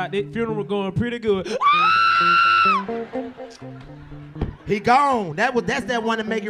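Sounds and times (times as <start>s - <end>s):
speech: 0.0s - 6.4s
imitated high-pitched scream of a funeral mourner: 1.5s - 2.8s
laughter: 1.5s - 6.4s.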